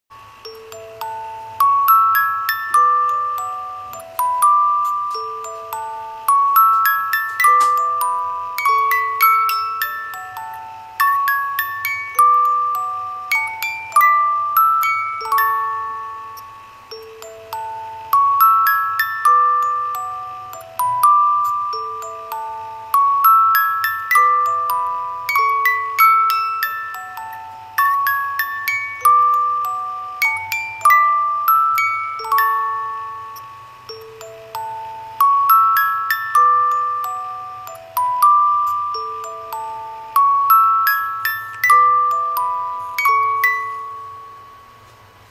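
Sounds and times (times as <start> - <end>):
music box: 0.1 - 45.2.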